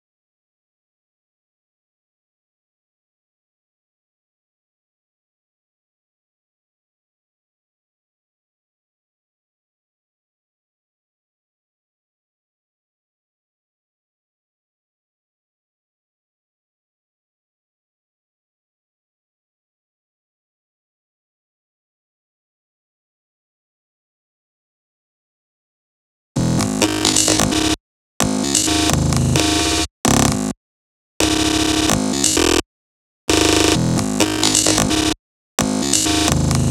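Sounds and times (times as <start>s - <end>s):
breakbeat: 26.4s - 30.5s, 31.2s - 32.6s, 33.3s - 36.6s.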